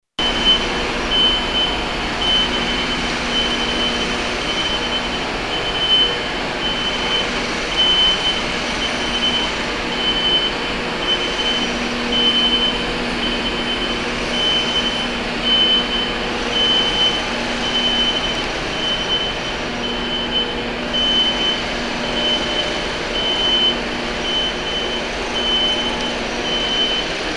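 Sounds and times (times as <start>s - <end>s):
truck at Busterminal Linz: 0.2s - 27.3s.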